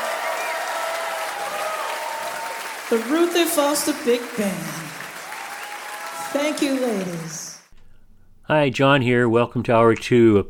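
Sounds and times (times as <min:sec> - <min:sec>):
audience applause: 0:00.0 - 0:07.7
speech: 0:02.9 - 0:05.0, 0:06.3 - 0:07.4, 0:08.5 - 0:10.4.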